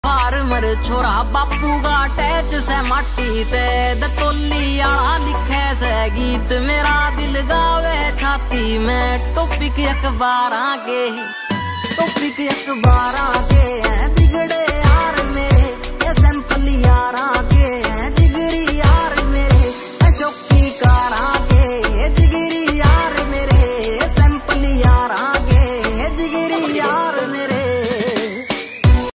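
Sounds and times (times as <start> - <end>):
Haryanvi ringtone music: 0.0 - 29.1.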